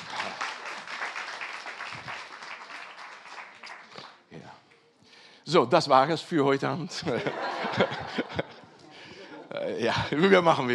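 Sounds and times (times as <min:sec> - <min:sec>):
crowd applause: 0:00.0 - 0:04.2
speech: 0:05.5 - 0:08.4, 0:09.6 - 0:10.7
laughter: 0:06.9 - 0:10.3.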